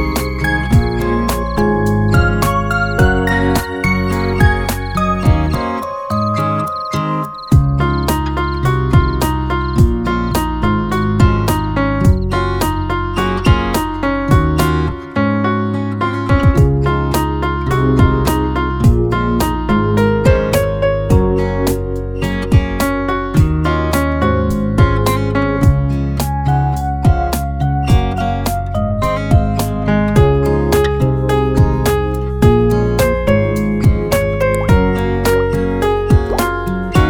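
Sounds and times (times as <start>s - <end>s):
piano piece: 0.0s - 37.0s.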